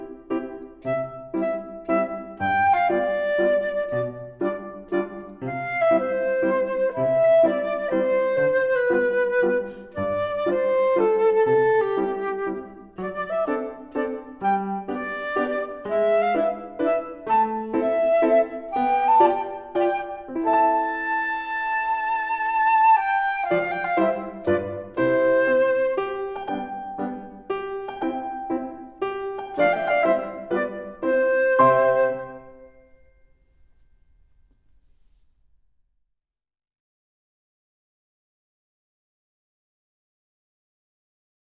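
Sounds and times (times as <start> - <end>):
flute performance: 0.3 - 33.2.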